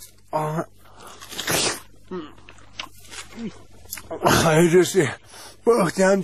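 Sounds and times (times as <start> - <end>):
speech: 0.3 - 0.8, 3.4 - 6.2
crunchy bite into a fresh melon: 1.1 - 4.1.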